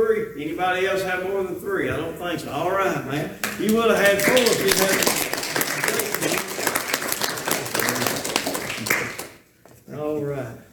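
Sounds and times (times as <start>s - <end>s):
speech: 0.2s - 5.3s
audience applause: 3.4s - 9.4s.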